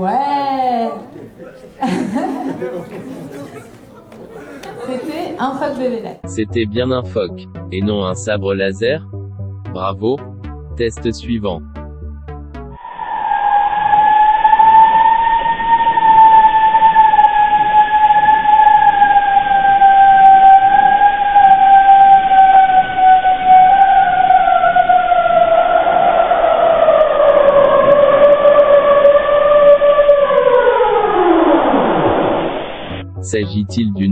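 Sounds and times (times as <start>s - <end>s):
laughter: 0.0s - 6.2s
speech: 0.0s - 11.7s, 33.3s - 34.1s
iceberg siren-like tone: 11.6s - 34.1s.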